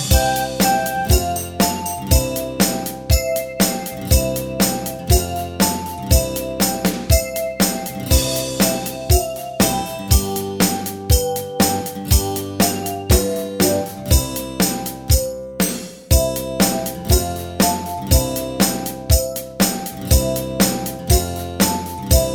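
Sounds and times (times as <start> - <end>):
bass line without melody: 0.1 - 22.3.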